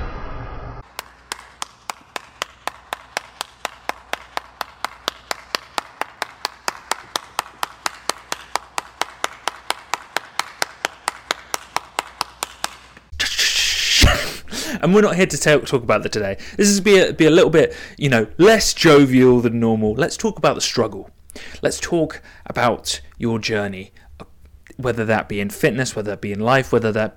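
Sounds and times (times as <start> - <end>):
round of applause: 0.9 - 13.1
speech: 14.8 - 27.1.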